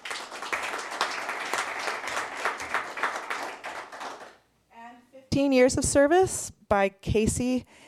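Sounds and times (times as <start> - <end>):
audience applause: 0.0 - 4.4
speech: 5.4 - 7.8.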